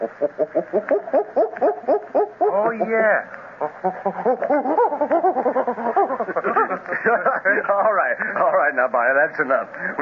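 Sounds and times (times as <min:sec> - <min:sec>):
speech: 0:00.0 - 0:01.4, 0:02.8 - 0:04.9, 0:07.8 - 0:10.0
voice imitating gorilla barking: 0:00.0 - 0:03.0, 0:03.6 - 0:06.8
laughter: 0:03.8 - 0:08.4.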